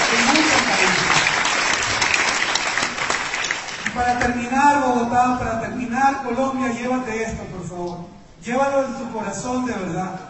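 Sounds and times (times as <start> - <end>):
audience applause: 0.0 - 4.0
speech: 4.0 - 10.2.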